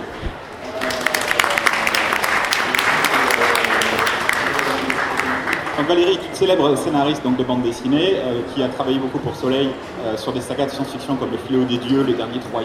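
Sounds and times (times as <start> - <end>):
audience applause: 0.6 - 6.1
speech: 5.9 - 12.6.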